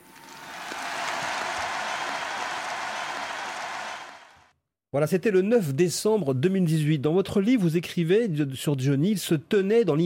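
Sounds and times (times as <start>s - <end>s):
audience applause for a singer: 0.0s - 4.5s
speech: 4.9s - 10.0s.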